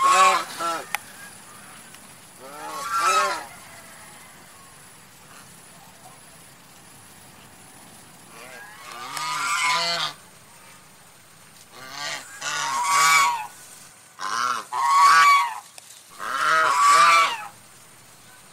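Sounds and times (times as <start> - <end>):
domestic goose honking: 0.0 - 1.8, 2.4 - 3.9, 8.3 - 10.3, 11.7 - 13.6, 14.2 - 17.6.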